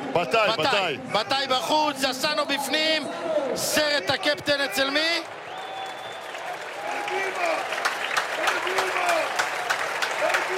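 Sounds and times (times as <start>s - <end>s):
speech: 0.2s - 5.4s
stadium crowd applause: 3.5s - 10.5s.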